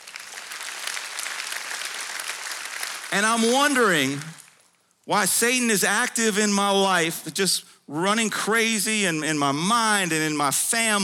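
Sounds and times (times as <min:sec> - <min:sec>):
crowd clapping: 0:00.0 - 0:04.8
speech: 0:03.1 - 0:04.4, 0:05.1 - 0:11.0.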